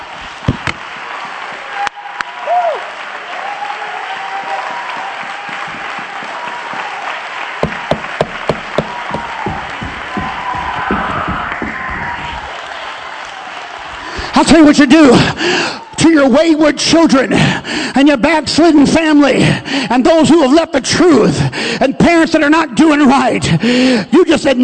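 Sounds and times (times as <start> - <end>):
crowd clapping: 0.0 - 15.9
faint voices and cheering: 0.0 - 16.8
speech: 14.4 - 24.6.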